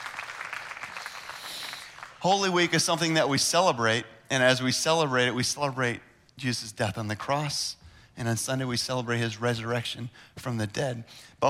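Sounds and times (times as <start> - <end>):
audience applauding: 0.0 - 2.8
speech: 2.2 - 11.4.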